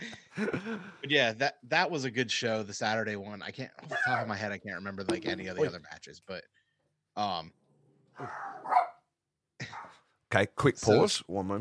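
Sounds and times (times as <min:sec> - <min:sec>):
speech: 0:00.4 - 0:06.6, 0:07.2 - 0:07.6, 0:08.2 - 0:08.9, 0:09.7 - 0:11.5
dog barking: 0:03.9 - 0:04.3, 0:08.2 - 0:09.0, 0:09.6 - 0:10.0.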